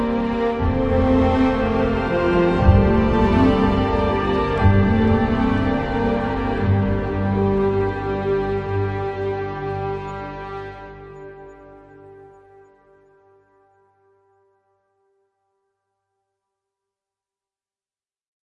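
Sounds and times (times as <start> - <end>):
ambient prayer music: 0.0 - 14.6.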